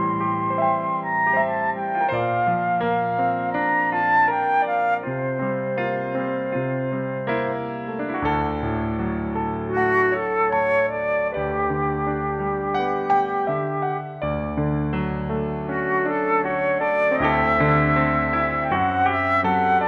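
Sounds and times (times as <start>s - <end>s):
flute: 0.0s - 19.8s
piano: 0.0s - 19.8s.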